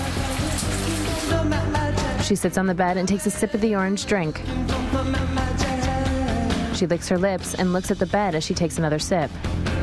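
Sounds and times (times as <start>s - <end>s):
shower water running: 0.0s - 1.8s
speech: 2.3s - 5.8s, 6.8s - 9.7s.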